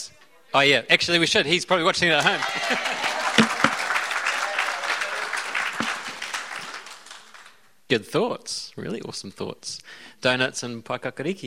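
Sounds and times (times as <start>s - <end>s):
speech: 0.0s - 3.5s, 7.9s - 11.4s
crowd applauding: 2.2s - 7.6s
laughter: 2.3s - 3.9s.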